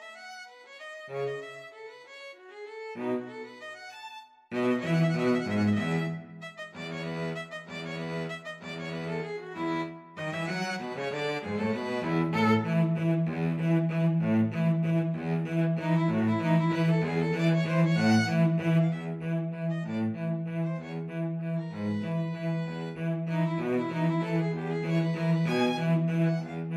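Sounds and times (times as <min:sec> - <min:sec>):
cello in a violin and cello duet: 0:00.0 - 0:26.7
violin in a violin and cello duet: 0:00.0 - 0:26.7.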